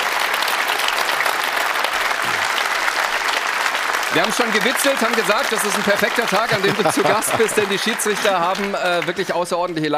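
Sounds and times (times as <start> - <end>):
crowd applause: 0.0 - 9.9
speech: 4.2 - 9.9
laughter: 5.0 - 8.8.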